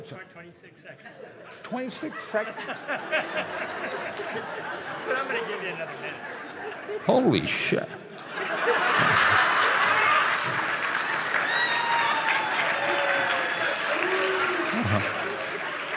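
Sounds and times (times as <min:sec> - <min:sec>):
speech: 0:00.0 - 0:08.0
laughter: 0:01.0 - 0:11.5, 0:13.9 - 0:15.9
audience applause: 0:08.6 - 0:15.9.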